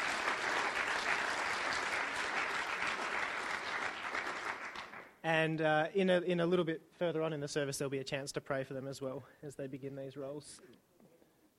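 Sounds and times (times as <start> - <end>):
audience applause: 0.0 - 5.1
speech: 5.2 - 10.8.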